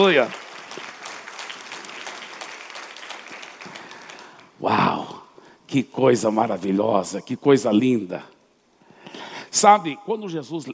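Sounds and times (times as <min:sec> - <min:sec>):
speech: 0:00.0 - 0:00.4, 0:05.7 - 0:08.3, 0:09.5 - 0:10.7
audience applause: 0:00.0 - 0:04.6.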